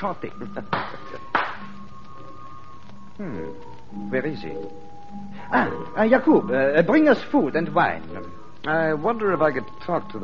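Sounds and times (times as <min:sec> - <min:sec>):
speech: 0:00.0 - 0:01.4, 0:03.2 - 0:10.2
hand clap to summon a servant: 0:00.7 - 0:01.7.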